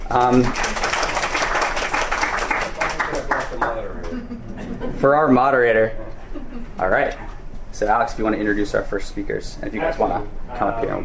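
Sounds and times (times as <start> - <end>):
audience applause: 0.0 - 4.0
speech: 0.1 - 0.8, 3.8 - 11.0
laughter: 2.8 - 7.0.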